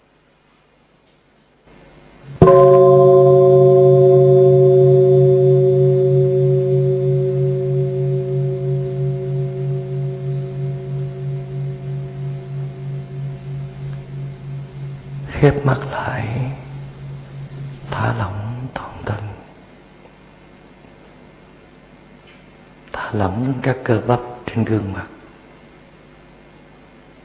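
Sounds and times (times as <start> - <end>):
meditation bell being struck: 2.3 - 19.5
speech: 23.6 - 25.1.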